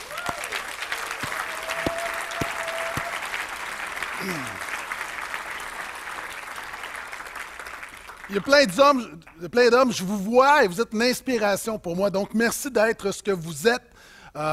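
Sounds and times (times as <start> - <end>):
audience applause: 0.0 - 8.6
speech: 8.3 - 14.5.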